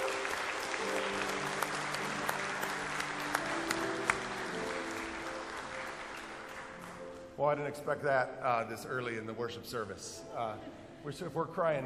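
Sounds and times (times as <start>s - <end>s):
audience applause: 0.0s - 7.3s
speech: 7.4s - 11.8s.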